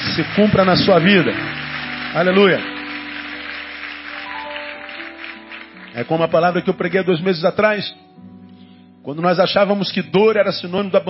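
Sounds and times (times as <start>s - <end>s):
audience applauding loudly: 0.0s - 6.6s
speech: 0.2s - 2.7s, 6.0s - 8.3s, 9.0s - 11.0s.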